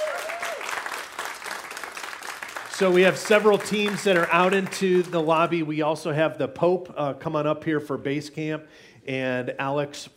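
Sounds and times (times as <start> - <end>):
crowd applauding: 0.0 - 5.6
speech: 2.8 - 10.1.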